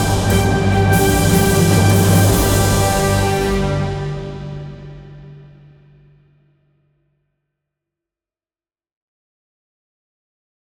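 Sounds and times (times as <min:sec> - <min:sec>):
battle action music: 0:00.0 - 0:05.6.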